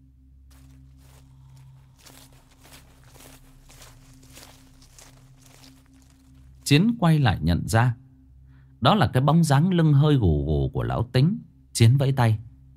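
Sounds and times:
low hum: 0.0 - 8.8
slow footsteps: 0.5 - 6.7
speech: 6.7 - 8.0, 8.8 - 12.5.

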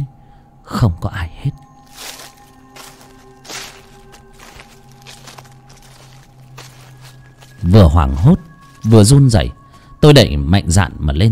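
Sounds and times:
speech: 0.7 - 1.6, 7.6 - 11.3
soft scuffing footsteps outside in the dark in front of a hut: 1.8 - 9.0.

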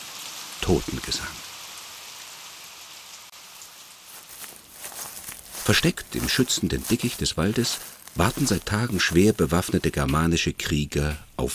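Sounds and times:
rain falling: 0.0 - 10.3
speech: 0.7 - 1.5, 5.7 - 11.5.

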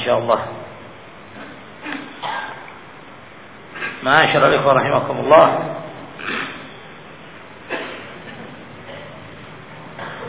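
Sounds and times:
low steady hum: 0.0 - 10.2
speech: 0.1 - 0.6, 4.0 - 6.4
harsh coughs: 1.8 - 2.7, 3.7 - 4.0, 6.2 - 6.8, 7.6 - 9.2, 10.0 - 10.2.

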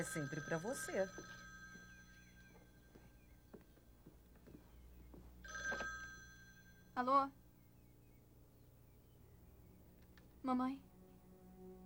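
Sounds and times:
speech: 0.0 - 1.4, 7.0 - 7.4, 10.4 - 10.9
telephone ringing with high electronic tones: 0.0 - 3.3, 5.4 - 7.0
faint clicks: 10.0 - 10.3.

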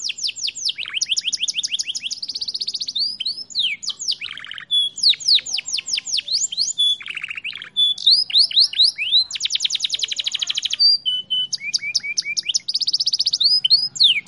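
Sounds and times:
Belgian canary song: 0.0 - 14.2.

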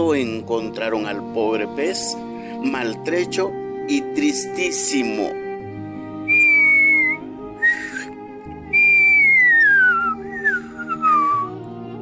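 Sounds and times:
speech: 0.0 - 5.4
faint nostalgic whistled tune: 6.3 - 11.6.

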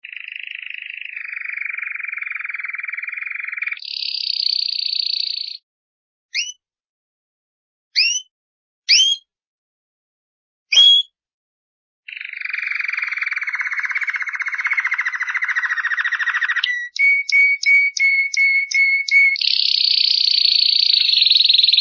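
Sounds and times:
champion singing canary trilling and whistling: 0.0 - 5.6, 6.4 - 6.6, 8.0 - 8.3, 8.9 - 9.2, 10.7 - 11.1, 12.1 - 21.8.

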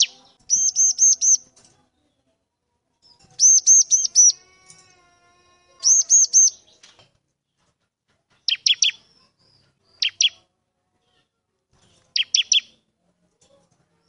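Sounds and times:
bar-winged prinia singing vigorously: 0.0 - 1.5, 3.4 - 4.4, 5.8 - 6.8, 8.4 - 9.1, 9.9 - 10.4, 12.2 - 12.8.

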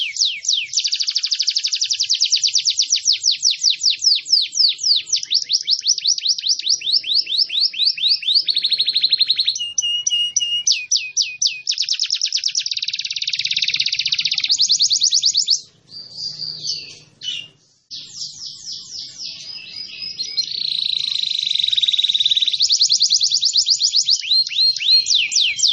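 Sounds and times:
canary singing varied phrases: 0.0 - 25.7.

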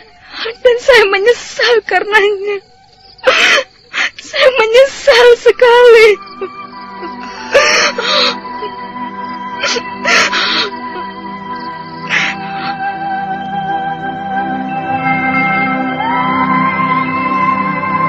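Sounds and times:
young woman sobbing bitterly: 0.0 - 2.6, 3.2 - 13.0
sustained tones: 0.0 - 18.0
speech: 0.6 - 3.7, 4.3 - 6.6.

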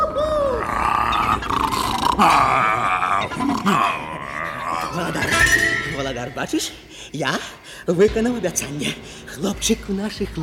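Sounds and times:
tiger roaring: 0.6 - 5.4
speech: 2.2 - 2.7, 6.1 - 10.4.

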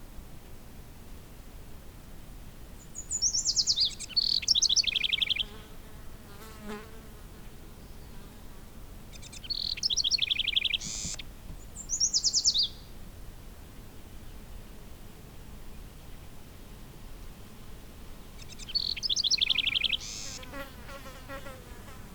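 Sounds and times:
bird chirping: 2.8 - 5.6, 9.1 - 12.9, 18.4 - 20.6.

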